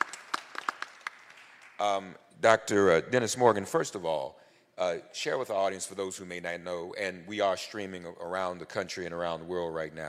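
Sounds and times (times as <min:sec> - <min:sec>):
audience applause: 0:00.0 - 0:01.8
speech: 0:01.8 - 0:10.0.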